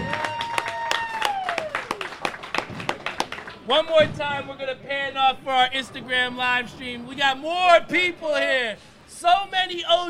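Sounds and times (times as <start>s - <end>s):
audience applause: 0.0s - 3.6s
speech: 3.7s - 10.0s.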